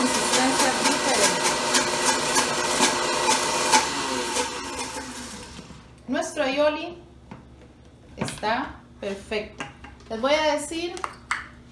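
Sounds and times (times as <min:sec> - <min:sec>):
blender slowing as mixture thickens: 0:00.0 - 0:05.9
speech: 0:06.4 - 0:07.0, 0:08.4 - 0:11.1.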